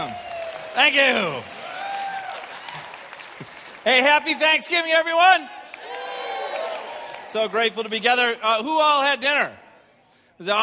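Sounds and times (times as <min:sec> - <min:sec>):
audience applause: 0:00.0 - 0:05.0, 0:05.6 - 0:08.0
speech: 0:00.8 - 0:01.5, 0:03.8 - 0:05.6, 0:07.3 - 0:09.6, 0:10.4 - 0:10.6.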